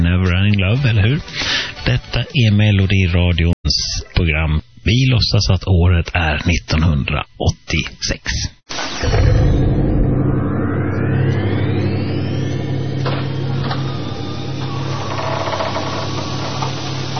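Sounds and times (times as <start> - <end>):
speech: 0.5 - 9.6
rising thin whine: 8.7 - 17.1
time machine car sound effect revving: 8.8 - 17.1.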